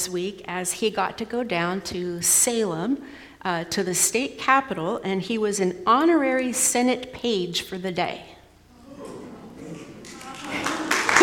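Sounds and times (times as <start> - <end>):
speech: 0.0 - 8.4
laughter: 8.7 - 11.2
audience applause: 9.6 - 11.2.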